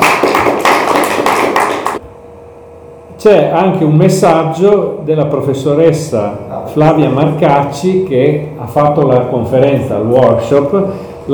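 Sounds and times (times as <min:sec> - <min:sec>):
audience applause: 0:00.0 - 0:02.0
speech: 0:03.2 - 0:11.1.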